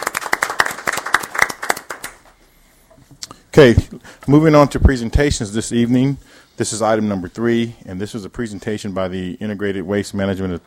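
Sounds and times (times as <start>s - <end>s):
audience clapping: 0.0s - 2.4s
speech: 3.6s - 10.6s.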